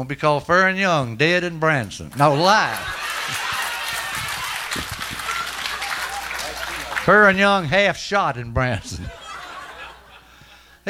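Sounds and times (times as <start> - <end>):
speech: 0.0 - 3.4, 7.1 - 9.2
laughter: 1.8 - 7.7, 8.7 - 10.7
audience applause: 2.1 - 7.6.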